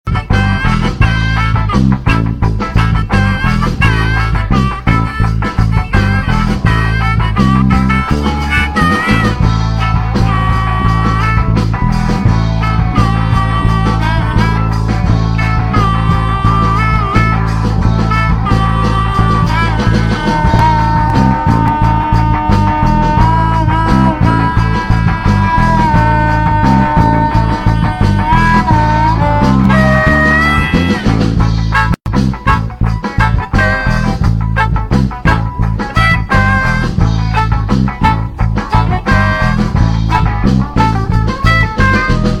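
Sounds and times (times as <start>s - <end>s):
surf funk music: 0.0s - 42.3s.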